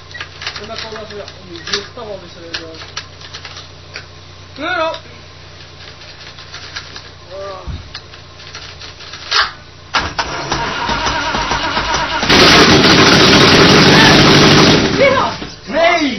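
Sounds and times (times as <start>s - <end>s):
speech: 0.6s - 3.0s, 4.6s - 5.2s, 7.3s - 7.9s
petrol engine starting: 9.9s - 15.6s.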